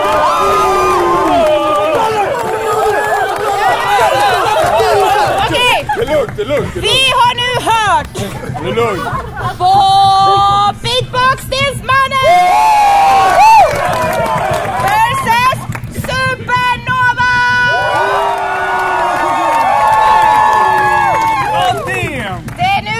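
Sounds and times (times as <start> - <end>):
audience cheering: 0.0 - 10.5, 11.9 - 22.8
laughter: 0.9 - 10.8
speech: 8.2 - 9.8.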